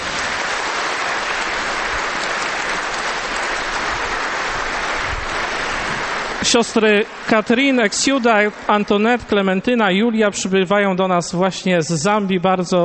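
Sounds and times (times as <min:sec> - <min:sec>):
audience applause: 0:00.0 - 0:09.6
speech: 0:06.5 - 0:12.8.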